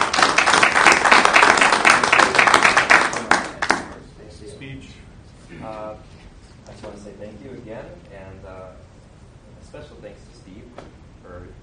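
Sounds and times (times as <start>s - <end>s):
audience applause: 0.0s - 4.0s.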